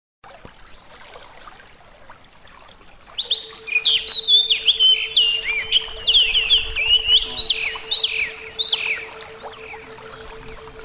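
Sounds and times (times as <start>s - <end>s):
Oriental magpie-robin song: 0.7s - 1.7s, 3.2s - 10.8s.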